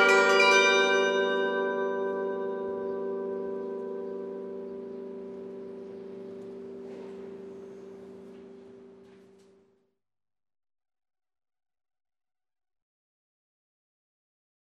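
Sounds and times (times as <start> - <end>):
glockenspiel: 0.0 - 9.1
carillon bells: 0.0 - 9.4.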